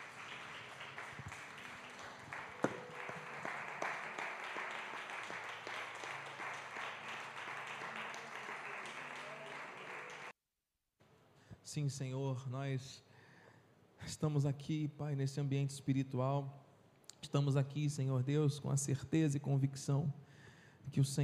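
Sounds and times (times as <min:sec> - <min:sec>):
audience applauding: 0:00.0 - 0:10.3
speech: 0:11.7 - 0:13.1, 0:14.2 - 0:16.6, 0:17.3 - 0:20.2, 0:20.8 - 0:21.2.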